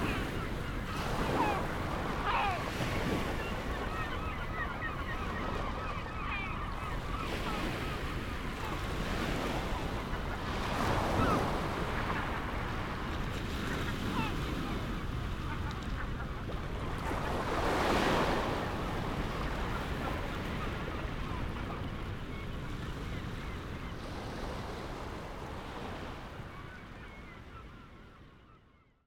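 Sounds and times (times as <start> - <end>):
gentle ocean waves: 0.0 - 28.8
gulls calling: 0.0 - 28.8.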